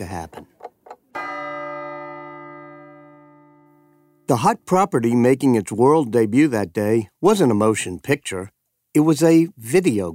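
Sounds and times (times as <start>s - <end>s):
speech: 0.0s - 0.5s, 4.3s - 10.1s
clock bell striking midnight: 1.2s - 4.3s.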